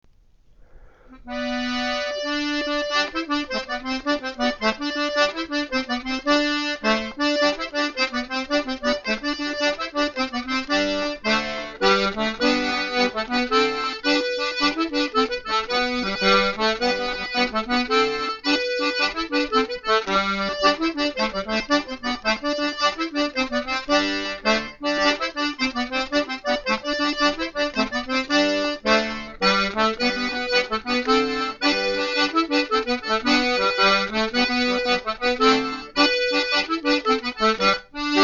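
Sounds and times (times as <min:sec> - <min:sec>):
folk rondeau dance music: 0:00.7 - 0:38.2.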